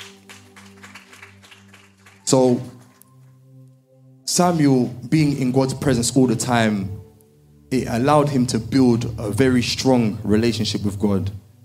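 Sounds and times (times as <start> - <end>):
group clapping: 0.0 - 3.4
speech: 2.3 - 2.8, 4.4 - 7.1, 7.7 - 11.6.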